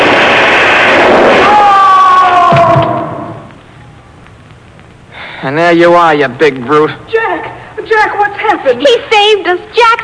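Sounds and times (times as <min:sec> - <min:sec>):
giant beanstalk crashing to the ground: 0:01.0 - 0:03.5
speech: 0:05.4 - 0:10.0.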